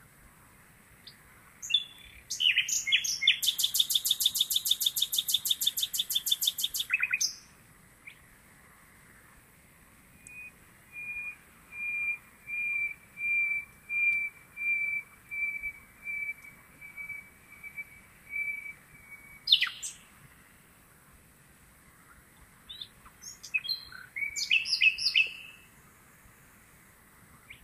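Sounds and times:
common nightingale singing trills and whistles: 0:01.6 - 0:08.2, 0:10.2 - 0:20.0, 0:22.7 - 0:25.6.

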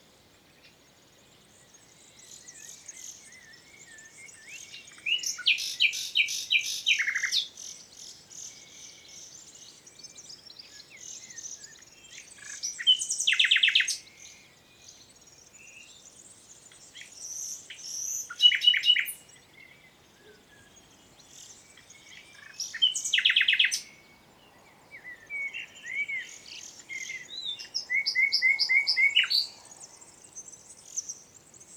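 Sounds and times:
Common nightingale song: 0:00.0 - 0:31.7
faint birdsong: 0:00.0 - 0:31.7.

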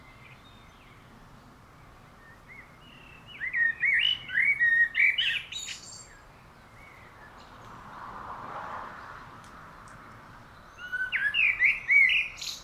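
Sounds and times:
common blackbird singing: 0:00.0 - 0:07.7, 0:10.5 - 0:12.6.

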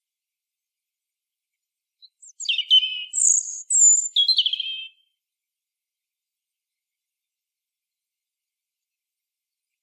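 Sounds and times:
European robin singing: 0:02.0 - 0:05.0.

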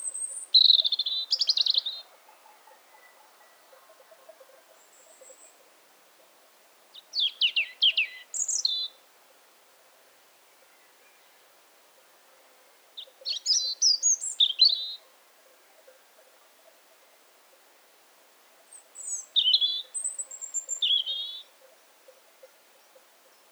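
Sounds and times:
European robin singing: 0:00.0 - 0:02.1, 0:06.9 - 0:09.0, 0:13.0 - 0:15.0, 0:18.7 - 0:21.6.

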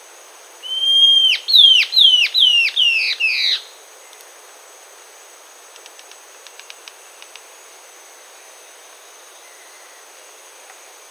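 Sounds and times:
faint hiss: 0:00.0 - 0:11.0
bird whistling call: 0:00.6 - 0:03.6.

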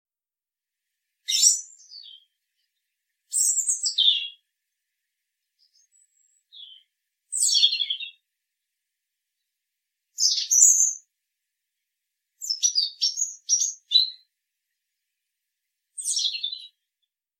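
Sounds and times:
European robin singing: 0:01.2 - 0:04.5, 0:05.4 - 0:08.3, 0:10.1 - 0:11.1, 0:12.4 - 0:14.3, 0:16.0 - 0:17.1.

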